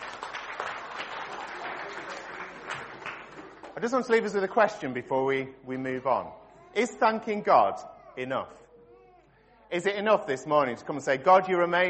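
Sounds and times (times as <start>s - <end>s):
audience applause: 0.0s - 3.8s
speech: 3.8s - 8.6s, 9.7s - 11.8s.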